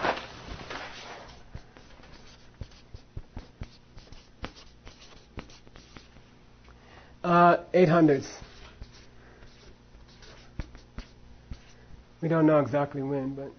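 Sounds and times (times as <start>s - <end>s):
handwriting scratches: 0.8s - 6.2s, 8.3s - 11.8s
speech: 7.3s - 8.4s, 12.2s - 13.5s.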